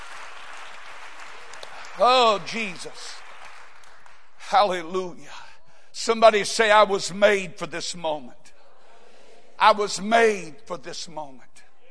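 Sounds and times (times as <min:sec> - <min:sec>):
audience clapping hands: 0:00.0 - 0:04.8
speech: 0:02.0 - 0:03.2, 0:04.5 - 0:05.4, 0:06.0 - 0:08.5, 0:09.6 - 0:11.6.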